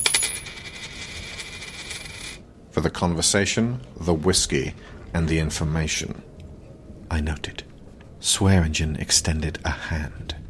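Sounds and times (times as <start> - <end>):
gold coin laid on a wooden bar: 0.0 - 2.4
speech: 2.8 - 6.3, 7.1 - 10.4.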